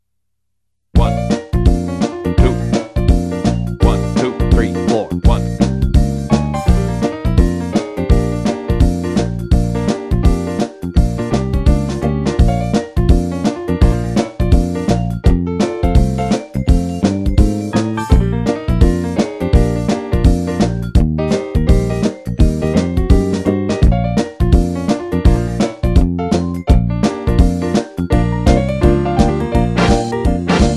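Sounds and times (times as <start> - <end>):
jazz music: 1.0 - 30.7.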